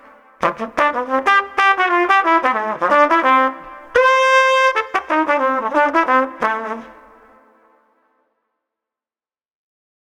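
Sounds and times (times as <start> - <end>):
street trumpet with positive mood: 0.0 - 7.8.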